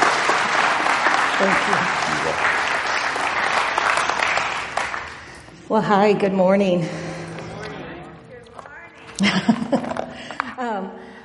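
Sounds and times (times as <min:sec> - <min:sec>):
church congregation applause welcoming a pastor on Mother's Day: 0:00.0 - 0:05.5
speech: 0:01.4 - 0:02.8, 0:05.7 - 0:07.0
laughter: 0:06.9 - 0:08.3, 0:09.0 - 0:10.6.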